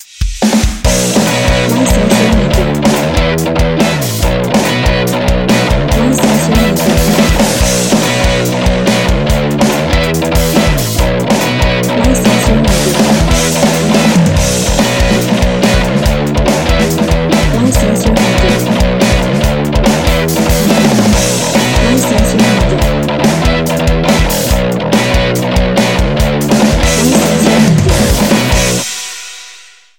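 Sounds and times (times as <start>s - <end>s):
rough bass: 0.9s - 28.8s.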